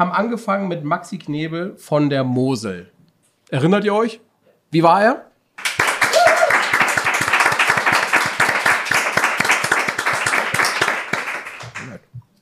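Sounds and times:
speech: 0.0s - 5.3s
crowd applauding: 5.6s - 12.1s.

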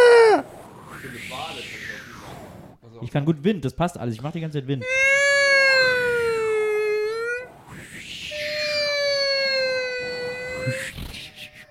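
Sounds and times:
person imitating a seagull: 0.0s - 0.5s, 4.8s - 7.5s, 8.3s - 11.4s
speech: 3.0s - 5.1s.

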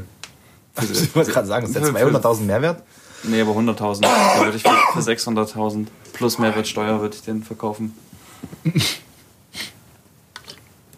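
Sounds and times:
speech: 0.8s - 9.0s
person coughing: 4.0s - 5.1s.

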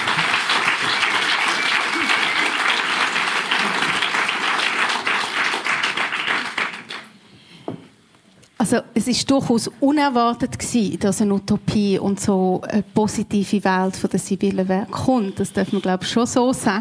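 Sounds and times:
audience applause: 0.0s - 7.2s
speech: 8.7s - 16.7s.

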